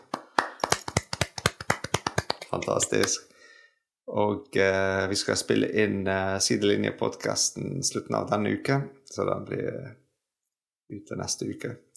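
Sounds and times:
small applause: 0:00.0 - 0:03.1
speech: 0:02.5 - 0:03.3, 0:04.1 - 0:10.0, 0:10.9 - 0:11.9.

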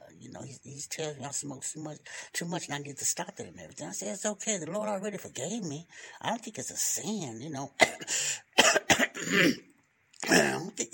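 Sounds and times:
speech: 0:00.4 - 0:09.7, 0:10.3 - 0:10.9
throat clearing: 0:07.8 - 0:10.7.

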